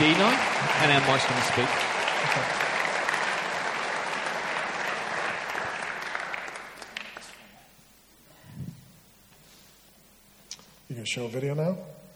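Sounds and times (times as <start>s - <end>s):
audience applause: 0.0s - 7.6s
speech: 0.3s - 2.8s, 11.1s - 12.0s.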